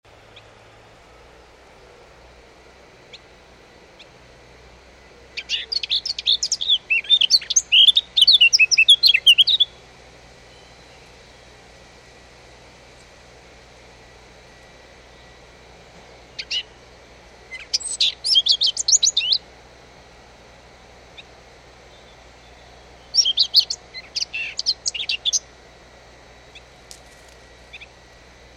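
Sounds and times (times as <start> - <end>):
Eurasian blackcap warbling: 5.0 - 9.8, 16.3 - 16.8, 17.5 - 19.4, 22.0 - 25.5.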